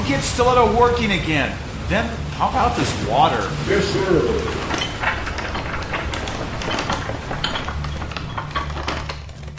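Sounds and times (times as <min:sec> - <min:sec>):
speech: 0:00.1 - 0:04.9
heavy door being closed manually: 0:02.5 - 0:09.5.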